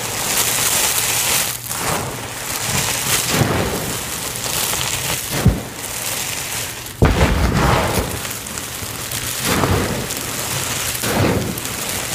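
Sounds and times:
confetti pouring down and rustling: 0.0s - 12.1s
low rumble: 7.0s - 10.3s.

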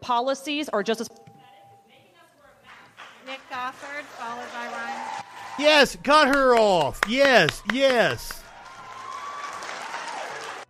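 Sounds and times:
speech: 0.0s - 1.3s, 3.6s - 5.0s, 5.6s - 8.4s
audience applauding: 2.7s - 10.6s.

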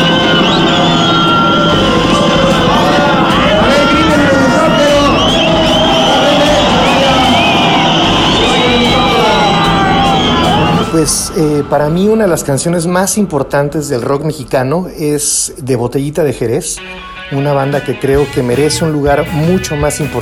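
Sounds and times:
large crowd applauding: 0.0s - 11.2s
dense babble of voices: 0.0s - 11.4s
large crowd cheering with whoops and shouts: 0.0s - 12.6s
speech: 11.0s - 20.1s.

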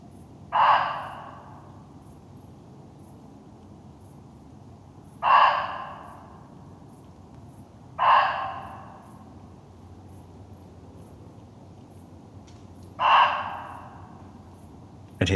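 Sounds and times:
muntjac deer call: 0.5s - 1.9s, 5.2s - 6.6s, 8.0s - 9.4s, 12.9s - 14.5s.

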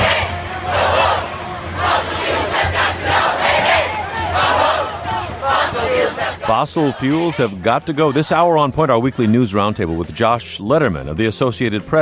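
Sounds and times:
roaring crowd of street marchers: 0.0s - 9.3s
speech: 6.5s - 12.0s.

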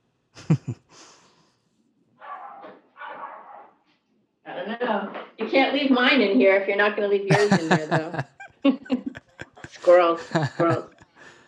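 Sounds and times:
laughter: 0.4s - 1.2s, 7.3s - 11.4s
speech: 0.5s - 0.8s, 5.5s - 9.0s, 9.9s - 10.9s
dog barking during a home podcast recording: 2.2s - 3.8s.

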